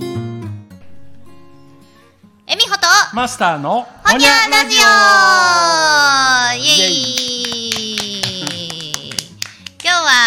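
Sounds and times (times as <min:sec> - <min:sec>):
speech: 0:03.1 - 0:07.2
hand claps: 0:06.7 - 0:10.2.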